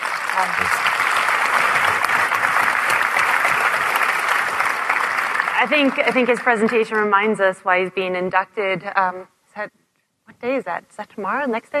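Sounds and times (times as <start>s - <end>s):
audience round of applause: 0.0s - 7.1s
speech: 0.4s - 1.0s, 5.6s - 9.8s, 10.4s - 11.7s.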